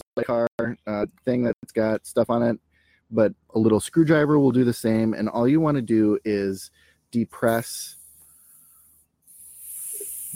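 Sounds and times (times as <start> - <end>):
speech: 0.2 - 8.0
butane lighter gas hissing out: 7.4 - 10.3.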